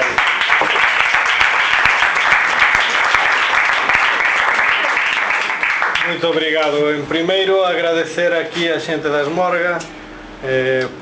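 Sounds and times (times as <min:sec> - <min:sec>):
crowd applause: 0:00.0 - 0:06.4
speech: 0:06.1 - 0:11.0.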